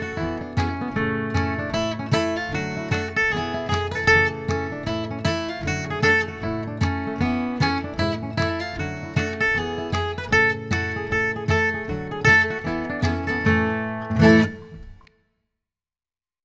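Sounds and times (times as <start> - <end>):
bluegrass guitar playing a fiddle tune in G: 0.0 - 15.1.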